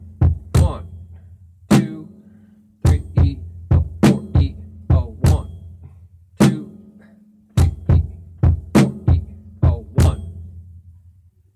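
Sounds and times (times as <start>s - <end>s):
drum beat: 0.0s - 1.0s, 1.7s - 2.1s, 2.9s - 5.6s, 6.4s - 6.7s, 7.6s - 10.4s.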